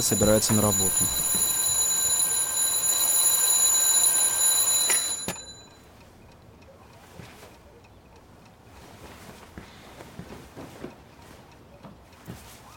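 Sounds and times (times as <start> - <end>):
speech: 0.0 - 1.4
alarm clock ringing at home: 0.0 - 6.0
quiet rustling: 6.6 - 12.7.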